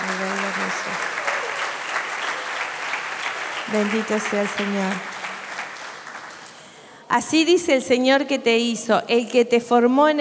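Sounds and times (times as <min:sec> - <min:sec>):
crowd applauding: 0:00.0 - 0:06.8
speech: 0:03.7 - 0:05.1, 0:07.1 - 0:10.2.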